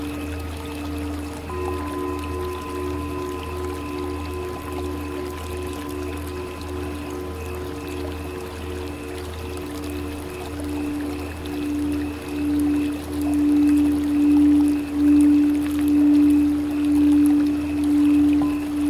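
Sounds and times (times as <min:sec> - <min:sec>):
Tibetan singing bowls: 0:00.0 - 0:18.8
flowing water: 0:00.0 - 0:18.8.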